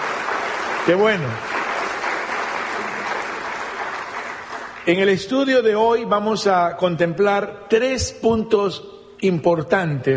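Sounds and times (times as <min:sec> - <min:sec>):
audience applause: 0:00.0 - 0:05.1
speech: 0:00.8 - 0:01.6, 0:04.8 - 0:10.1.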